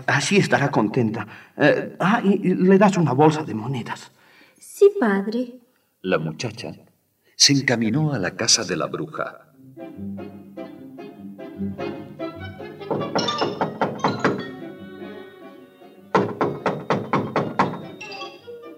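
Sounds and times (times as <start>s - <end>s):
speech: 0.0s - 4.2s, 4.8s - 10.2s
knocking on a wooden door: 12.6s - 14.8s, 16.1s - 18.0s.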